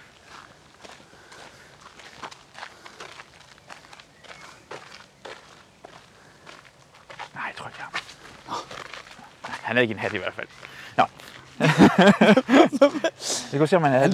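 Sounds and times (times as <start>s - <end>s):
footsteps of people walking: 0.1s - 13.1s
speech: 9.7s - 11.2s, 12.0s - 14.1s
laughter: 11.6s - 14.1s.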